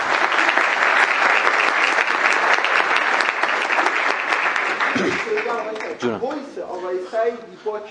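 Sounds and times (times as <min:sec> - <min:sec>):
audience applause: 0:00.0 - 0:06.2
speech: 0:06.0 - 0:07.8.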